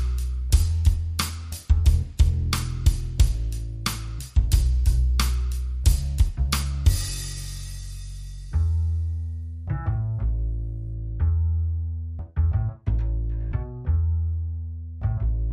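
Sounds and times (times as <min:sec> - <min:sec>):
drums: 0:00.0 - 0:08.8
bass: 0:00.0 - 0:15.5.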